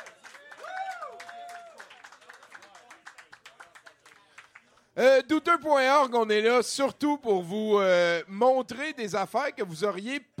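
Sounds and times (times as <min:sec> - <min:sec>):
audience applause: 0:00.0 - 0:04.7
speech: 0:05.0 - 0:10.3.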